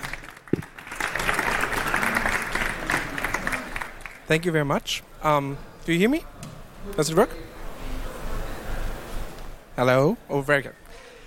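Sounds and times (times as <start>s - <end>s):
audience applause: 0.0s - 4.6s
speech: 4.3s - 7.5s, 9.8s - 10.8s.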